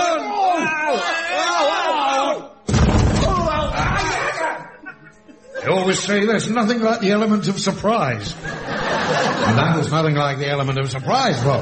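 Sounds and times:
people shouting: 0:00.0 - 0:04.9
trap door kicked open: 0:02.7 - 0:04.2
laughter: 0:03.5 - 0:06.3, 0:08.2 - 0:11.6
speech: 0:05.8 - 0:08.8, 0:09.4 - 0:11.6.

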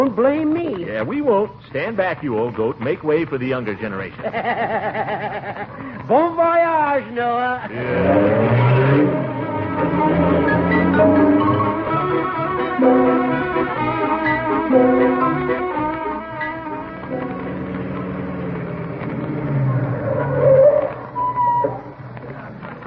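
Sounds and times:
speech: 0:00.0 - 0:11.5
laughter: 0:04.1 - 0:06.1
car driving off: 0:07.7 - 0:22.8.

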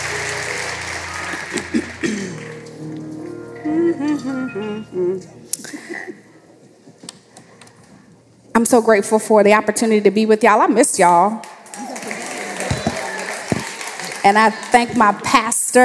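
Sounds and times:
audience applauding: 0:00.0 - 0:02.8, 0:11.6 - 0:15.2
speech: 0:04.2 - 0:05.4, 0:08.6 - 0:11.5, 0:14.2 - 0:15.8.

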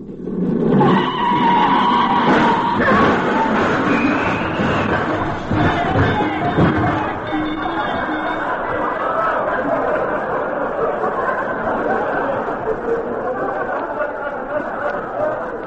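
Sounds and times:
voices: 0:00.0 - 0:15.6
car tires skidding crossing Sunset Boulevard: 0:00.3 - 0:09.3
laughter: 0:00.7 - 0:15.6.

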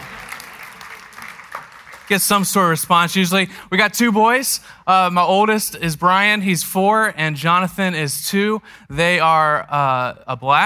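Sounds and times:
audience clapping: 0:00.0 - 0:02.8
speech: 0:02.1 - 0:10.6.

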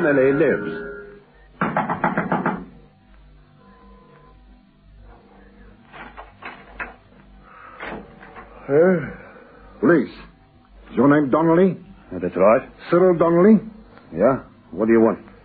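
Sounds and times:
speech: 0:00.0 - 0:01.0, 0:01.8 - 0:02.2, 0:08.7 - 0:09.2, 0:09.8 - 0:10.3, 0:11.0 - 0:15.3
knocking on a house door: 0:01.6 - 0:02.8.

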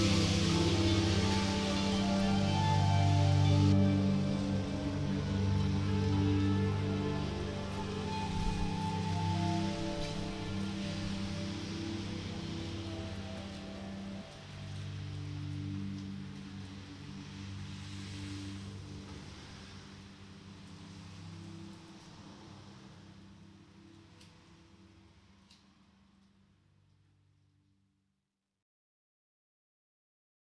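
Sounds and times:
soft rock music: 0:00.0 - 0:18.9.

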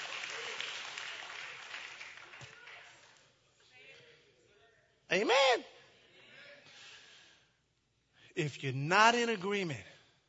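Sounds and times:
scattered applause from audience: 0:00.0 - 0:03.4
speech: 0:05.2 - 0:05.7, 0:08.4 - 0:09.9.

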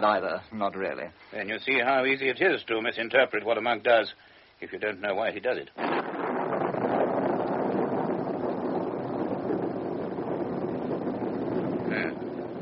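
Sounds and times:
speech: 0:00.0 - 0:06.1
wind blowing: 0:05.8 - 0:12.6.

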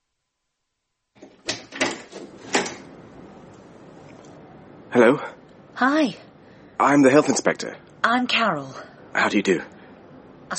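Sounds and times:
soft rustle of a door swinging: 0:01.2 - 0:02.9
speech: 0:04.9 - 0:09.8.

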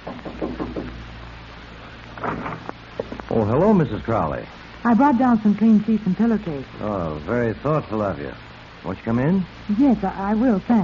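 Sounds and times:
knocking on a cabin door: 0:00.0 - 0:01.0
speech: 0:03.4 - 0:10.8.

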